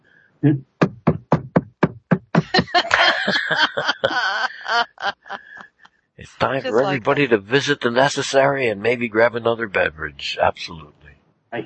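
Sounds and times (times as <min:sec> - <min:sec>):
speech: 0:00.4 - 0:00.7, 0:02.8 - 0:05.2, 0:06.2 - 0:11.6
voice imitating heartbeat thumps: 0:00.5 - 0:03.1
snickering laughter: 0:02.4 - 0:05.6, 0:06.3 - 0:07.7.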